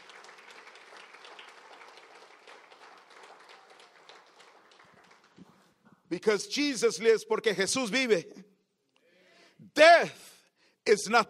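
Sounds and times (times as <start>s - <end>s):
audience applause: 0.0s - 5.7s
speech: 6.1s - 8.4s, 10.9s - 11.2s.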